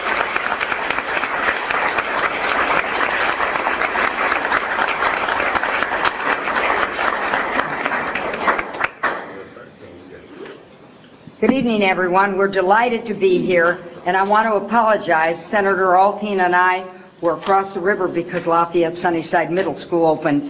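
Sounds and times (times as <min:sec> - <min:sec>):
applause: 0:00.0 - 0:09.3
speech: 0:11.6 - 0:20.4.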